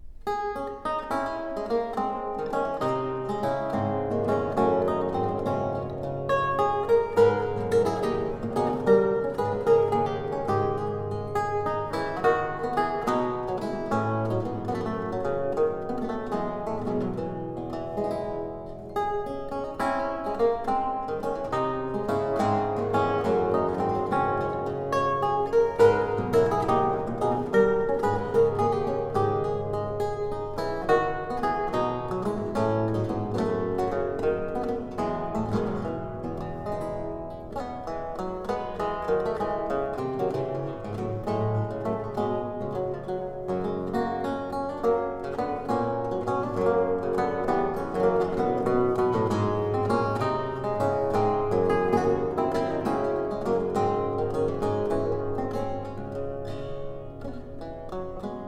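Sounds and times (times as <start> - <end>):
gigue lute music: 0.0 - 58.4.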